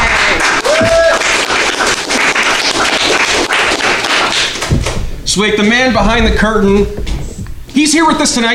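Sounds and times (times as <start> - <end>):
crowd applause: 0.0 - 5.0
whoop or whistle: 0.6 - 1.3
speech: 5.4 - 7.1, 7.8 - 8.5.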